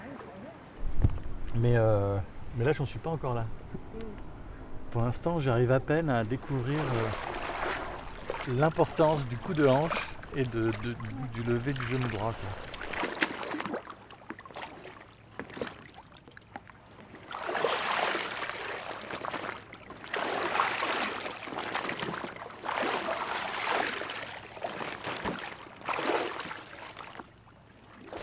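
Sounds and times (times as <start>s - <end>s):
water sloshing and splashing as a kayak is handled at the water's edge: 0.7s - 28.2s
speech: 1.5s - 4.3s, 4.9s - 7.4s, 8.4s - 12.7s.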